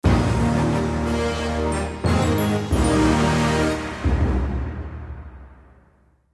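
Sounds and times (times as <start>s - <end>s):
medal fanfare: 0.0s - 5.0s.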